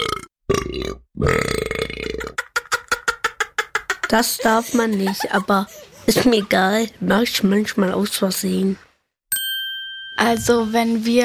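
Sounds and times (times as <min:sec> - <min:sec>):
long loud gurgling burp and shorter rhythmic belches: 0:00.0 - 0:02.4
speech: 0:00.9 - 0:01.6, 0:04.1 - 0:08.9, 0:10.2 - 0:11.2
laughter: 0:02.3 - 0:06.8.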